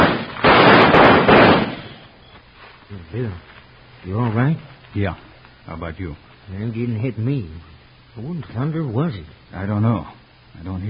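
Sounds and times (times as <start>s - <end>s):
gunshots: 0.0s - 2.1s
speech: 3.0s - 10.8s.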